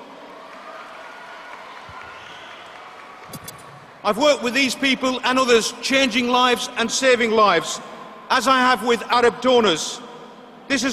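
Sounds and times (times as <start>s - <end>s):
audience applause: 0.0s - 3.8s
speech: 4.0s - 10.1s, 10.7s - 10.9s.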